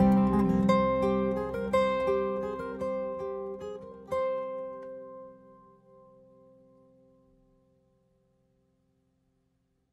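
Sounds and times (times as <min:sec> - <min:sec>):
theme on a 12-string guitar: 0:00.0 - 0:07.6.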